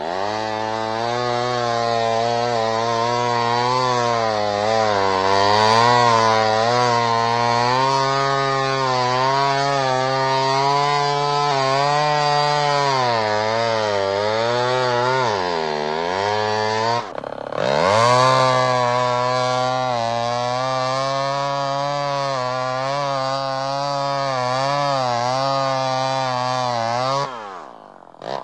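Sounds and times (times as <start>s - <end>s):
petrol chainsaw running: 0.0s - 28.4s.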